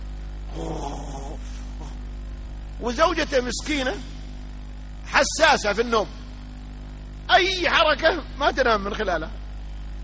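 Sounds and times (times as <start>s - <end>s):
steady low hum: 0.0s - 10.0s
man's voice imitating a sleeper's snoring like a kerosene stove: 0.5s - 2.0s
speech: 2.8s - 4.2s, 5.2s - 6.2s, 7.3s - 9.4s.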